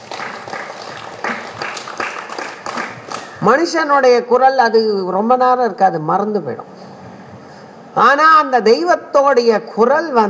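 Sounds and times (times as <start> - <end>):
sharp hand claps: 0.0 - 3.3
speech: 3.4 - 6.7, 8.0 - 10.2.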